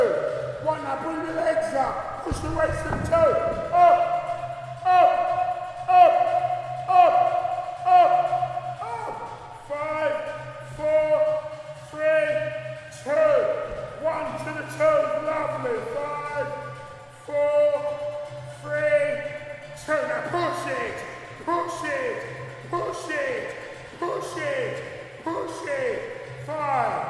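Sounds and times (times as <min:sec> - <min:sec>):
man's voice leading a gym class at Bloomsbury Fitness: 0:00.0 - 0:27.0
dull thump: 0:02.2 - 0:03.7.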